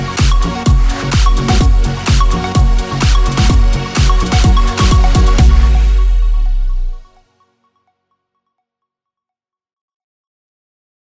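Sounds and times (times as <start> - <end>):
electronic dance music: 0.0 - 7.2.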